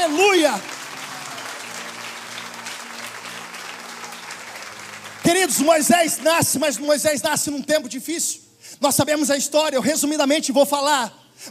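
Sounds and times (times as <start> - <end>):
speech: 0.0 - 0.8, 5.2 - 11.4
audience applause: 0.0 - 7.0.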